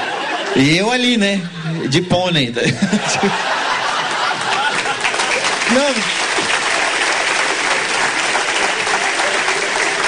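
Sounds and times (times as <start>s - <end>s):
laughter: 0.0s - 0.8s, 2.6s - 7.3s, 8.2s - 10.0s
speech: 0.6s - 3.6s, 5.7s - 6.2s
audience applause: 3.4s - 10.0s.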